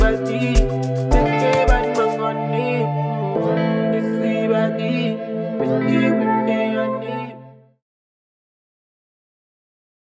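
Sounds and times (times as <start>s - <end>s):
afrobeats music sample: 0.0s - 7.3s.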